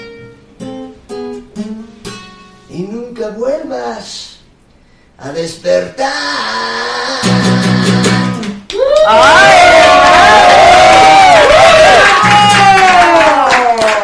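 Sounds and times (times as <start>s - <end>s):
speech: 2.8s - 4.3s, 5.2s - 8.0s, 9.0s - 10.5s
studio audience cheering on a television programme: 8.7s - 14.0s.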